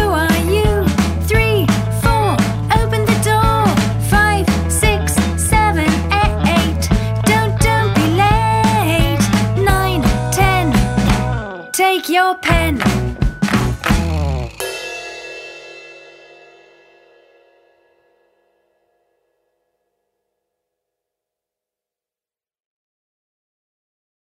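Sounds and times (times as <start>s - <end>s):
karaoke singing: 0.0s - 14.5s.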